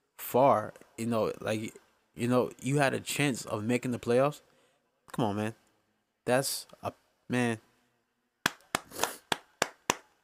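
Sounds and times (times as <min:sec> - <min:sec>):
speech: 0:00.3 - 0:04.5, 0:05.1 - 0:05.6, 0:06.3 - 0:07.7
one person clapping: 0:08.4 - 0:10.1.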